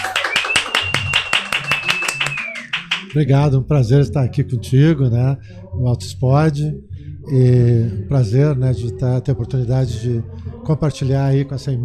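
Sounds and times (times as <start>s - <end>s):
round of applause: 0.0s - 3.2s
speech: 3.1s - 11.8s.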